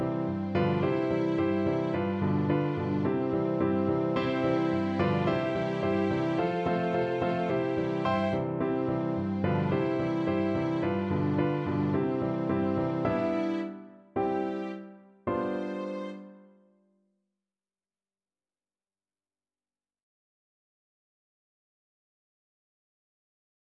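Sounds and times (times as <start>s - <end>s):
small violin: 0.0s - 16.4s
piano: 0.0s - 16.8s.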